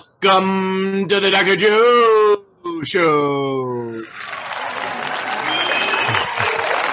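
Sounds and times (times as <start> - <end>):
speech: 0.2 - 4.1
thunderous applause: 4.0 - 6.9.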